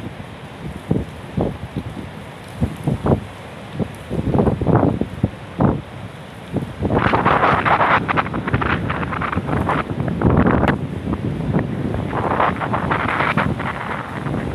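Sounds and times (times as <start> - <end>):
storm wind gusts buffeting the microphone at the ocean in Danang, Vietnam: 0.0 - 5.9, 6.5 - 14.5.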